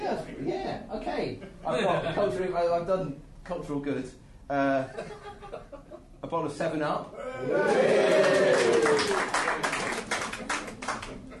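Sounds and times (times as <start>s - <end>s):
speech: 0.8s - 5.4s, 6.2s - 9.6s
audience applause: 7.7s - 11.3s.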